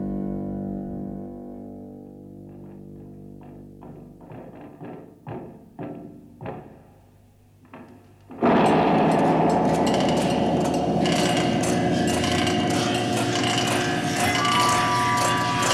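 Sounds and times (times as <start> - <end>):
explosion with added stereo echo: 8.4 - 15.6.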